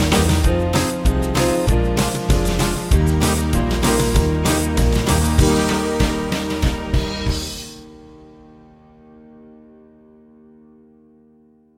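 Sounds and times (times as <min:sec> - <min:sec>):
small band playing: 0:00.0 - 0:08.0.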